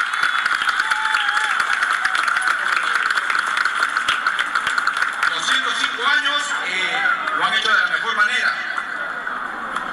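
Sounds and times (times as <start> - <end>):
crowd applause: 0.0 - 9.9.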